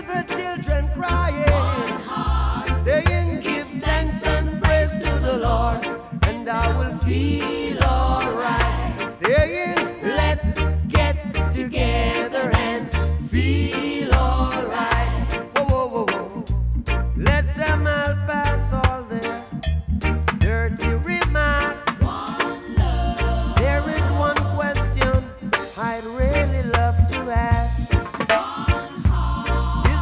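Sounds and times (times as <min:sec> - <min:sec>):
reggae music: 0:00.0 - 0:29.9.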